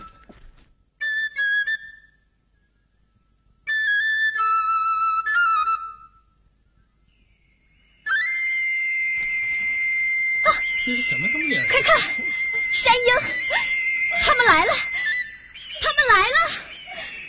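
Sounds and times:
eagle-bone flute being blown: 3.6s - 6.2s, 8.1s - 16.6s.

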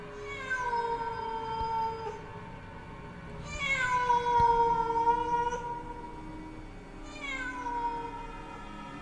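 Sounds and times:
cat meowing mournfully at night: 0.2s - 2.3s, 3.4s - 6.3s, 7.0s - 8.6s.

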